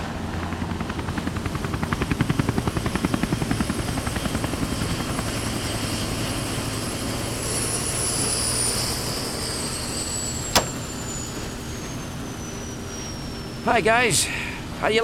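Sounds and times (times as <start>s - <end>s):
Hughes 500 helicopter landing on yacht: 0.0s - 15.0s
sharp click: 10.6s - 11.0s
speech: 13.7s - 15.0s.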